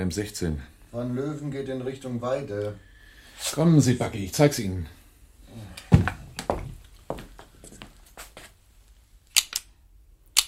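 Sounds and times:
speech: 0.0 - 5.8
G3 rifle mechanism clicking: 9.3 - 9.7.

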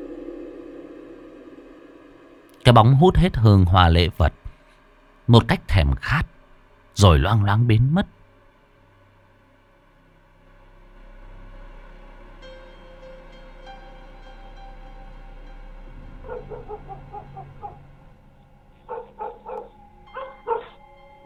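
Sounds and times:
low steady hum: 0.0 - 21.2
speech: 2.7 - 4.4, 5.3 - 6.4, 7.0 - 8.2
dogs barking and yelping at night: 16.1 - 21.2.

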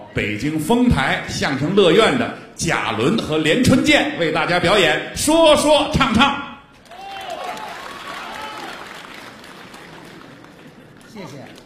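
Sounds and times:
speech: 0.2 - 6.5
warm applause from an audience at a crosstalk comedy show: 6.8 - 11.6.

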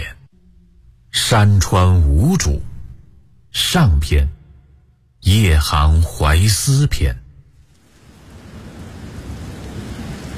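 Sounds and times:
speech: 1.3 - 2.7, 3.6 - 4.4, 5.2 - 7.2
steady hissing rain pouring down: 7.5 - 10.3
deep rolling rumble of thunder: 7.7 - 10.3.

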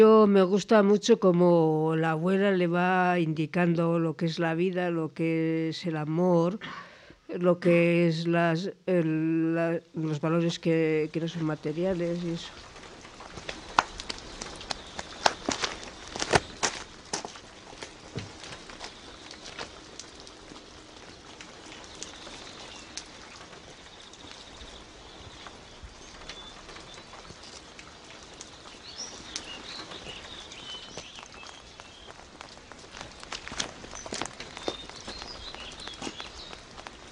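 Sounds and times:
speech: 0.0 - 12.7
steady rain: 0.0 - 37.1
footsteps of someone walking home through rain: 12.5 - 20.7, 28.9 - 37.1.

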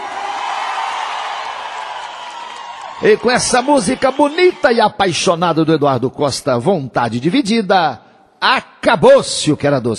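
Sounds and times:
large crowd roaring and cheering: 0.0 - 5.0
speech: 3.0 - 9.9.

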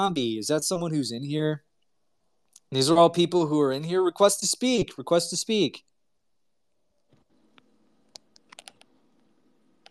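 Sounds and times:
speech: 0.0 - 1.7, 2.7 - 5.9
typing on a computer keyboard: 8.4 - 8.9.

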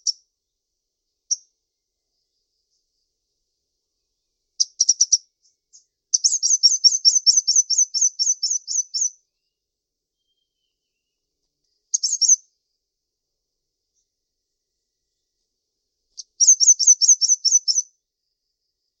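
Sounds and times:
bird chirping in short high sharp notes: 0.0 - 1.6, 2.2 - 12.7, 16.1 - 18.0.

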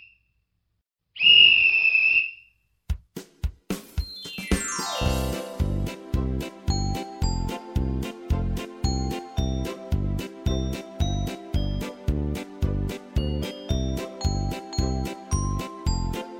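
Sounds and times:
shrill whistle blasts: 1.2 - 2.5
bright jingly burst of music: 3.9 - 16.3.

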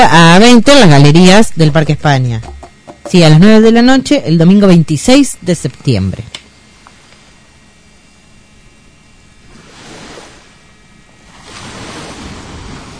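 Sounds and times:
speech: 0.0 - 6.4
ocean waves: 9.4 - 12.9.

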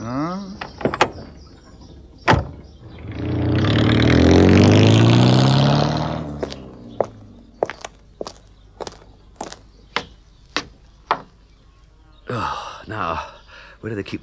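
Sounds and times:
car engine revving as the car pulls away: 2.7 - 9.6
crisp footsteps: 6.3 - 9.9
speech: 13.9 - 14.2.

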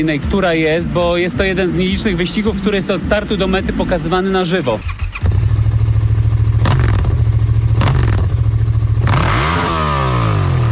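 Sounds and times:
speech: 0.0 - 5.1
race marshal's motorcycle engine roaring during a race: 0.0 - 10.7.

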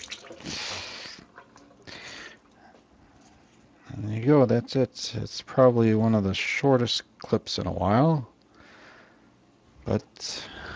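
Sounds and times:
water splashing over a boiled egg as its shell is rinsed: 0.0 - 1.9
water trickling: 0.0 - 2.4
speech: 4.2 - 8.3, 9.8 - 10.6.

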